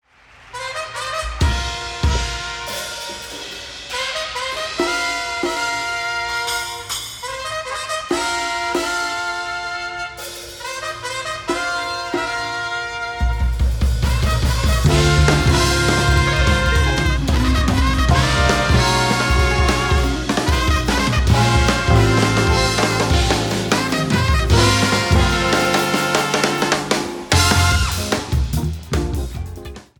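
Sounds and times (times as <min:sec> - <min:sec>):
trumpet: 0:00.4 - 0:29.4.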